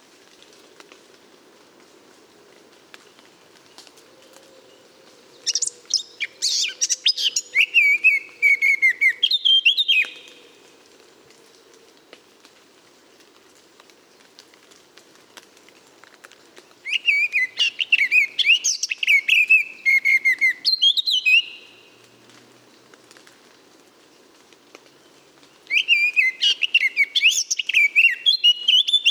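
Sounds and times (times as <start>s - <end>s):
Eurasian blackcap song with warble and whistles: 5.4s - 10.4s, 16.9s - 21.8s, 25.7s - 29.1s.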